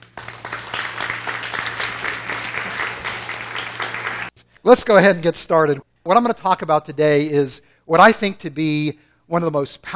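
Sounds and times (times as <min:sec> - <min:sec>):
audience applause welcoming a speaker at a morning session: 0:00.0 - 0:04.4
speech: 0:04.7 - 0:09.9.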